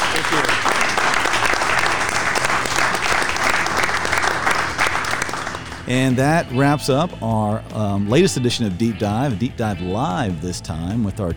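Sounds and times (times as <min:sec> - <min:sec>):
crowd applause: 0:00.0 - 0:06.0
speech: 0:05.9 - 0:11.3.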